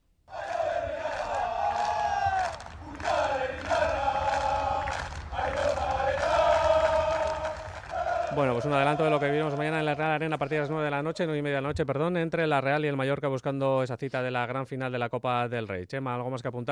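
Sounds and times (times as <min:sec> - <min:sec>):
crowd of fans chanting and singing at football training: 0:00.3 - 0:11.2
speech: 0:08.4 - 0:16.7.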